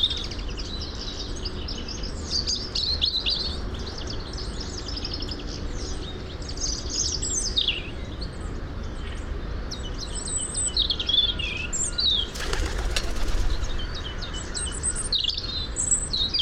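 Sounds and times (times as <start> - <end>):
European robin Erithacus rubecula singing: 0.0 - 16.3.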